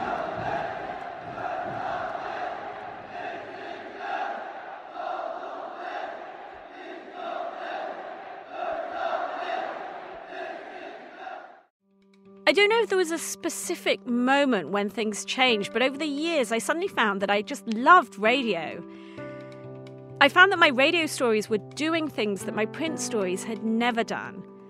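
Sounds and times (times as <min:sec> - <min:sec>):
crowd's perfectly coordinated cheers: 0:00.0 - 0:11.7
speech: 0:12.5 - 0:19.0, 0:20.2 - 0:24.5.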